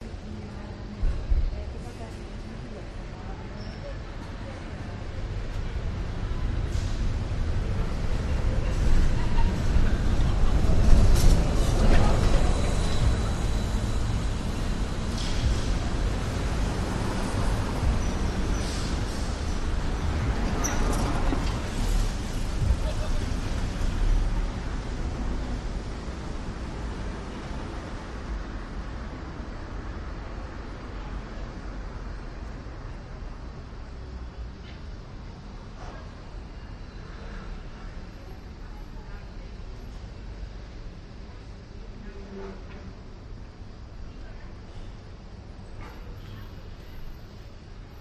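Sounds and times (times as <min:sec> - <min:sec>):
Athens side street ambience on a weekday evening: 0:00.0 - 0:47.9.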